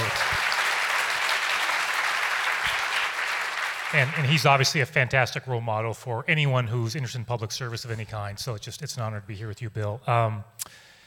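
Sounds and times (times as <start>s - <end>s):
audience applause for a guest of honor on stage: 0.0s - 4.8s
speech: 3.9s - 10.8s.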